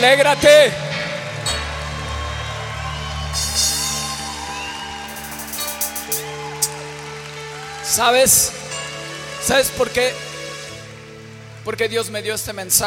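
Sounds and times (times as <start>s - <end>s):
speech: 0.0s - 0.9s, 7.9s - 8.6s, 9.4s - 10.3s, 11.6s - 12.8s
audience applause and cheering: 0.0s - 11.8s.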